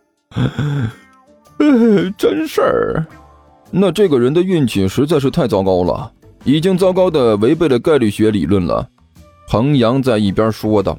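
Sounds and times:
speech: 0.3 - 1.0, 1.7 - 10.9
breathy noise: 0.3 - 2.2
person imitating a yawn: 0.3 - 2.2.

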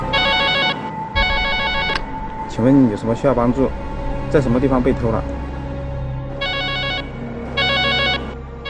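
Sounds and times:
police report telephone ringing: 0.2 - 2.0, 6.4 - 8.6
speech: 2.6 - 5.5.

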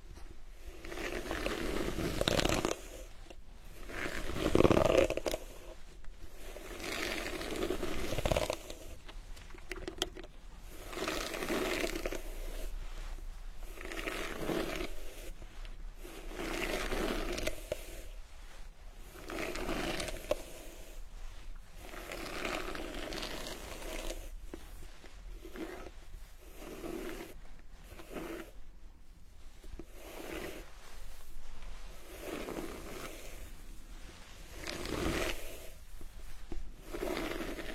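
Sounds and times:
faint crinkling: 0.0 - 37.7
hair washing scalp massage rubbing and scraping: 0.0 - 37.7.

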